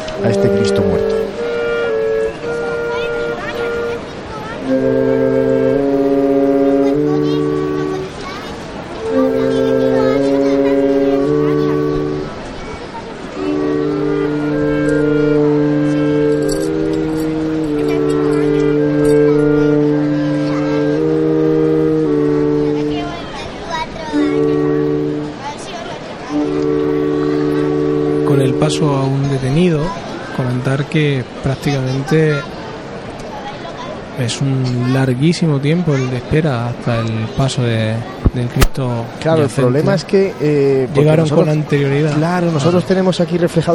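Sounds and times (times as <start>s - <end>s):
chapel music accompanying a procession: 0.0s - 12.5s, 13.2s - 23.3s, 24.1s - 25.6s, 26.3s - 29.8s, 40.9s - 42.8s
speech: 0.2s - 1.5s, 4.7s - 5.5s, 31.2s - 32.6s, 34.2s - 43.7s.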